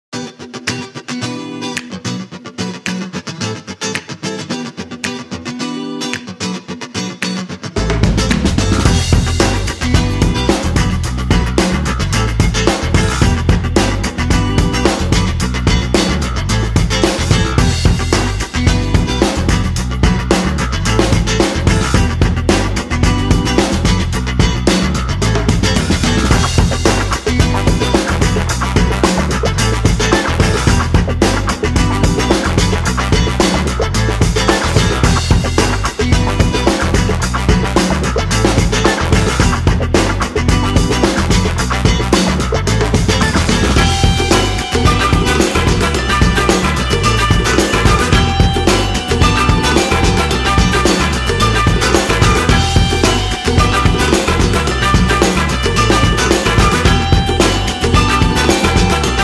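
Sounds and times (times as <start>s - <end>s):
break turns music: 0.1s - 59.2s.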